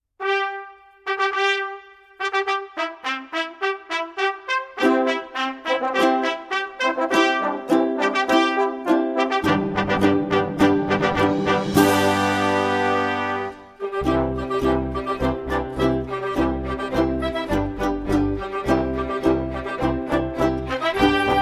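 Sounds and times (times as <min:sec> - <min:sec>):
ukulele overture: 0:00.2 - 0:21.4.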